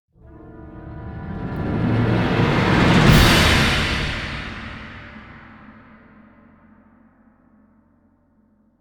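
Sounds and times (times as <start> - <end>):
combat music outro: 0.2 - 6.0.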